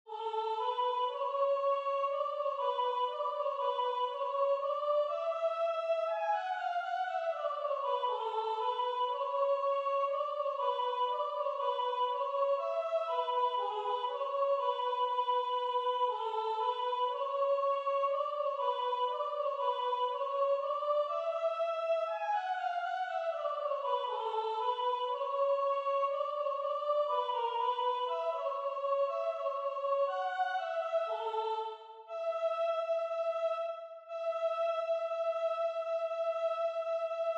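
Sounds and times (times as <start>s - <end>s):
soprano singing a dance tune: 0.1s - 37.3s.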